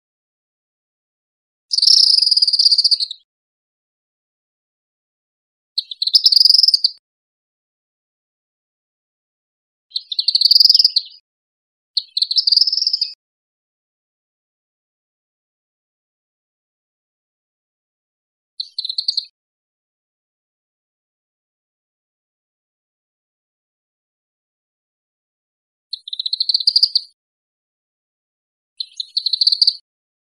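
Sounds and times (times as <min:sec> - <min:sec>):
tropical kingbird twittering call: 0:01.7 - 0:03.2, 0:05.8 - 0:07.0, 0:09.9 - 0:11.2, 0:12.0 - 0:13.2, 0:18.6 - 0:19.3, 0:25.9 - 0:27.2, 0:28.8 - 0:29.8.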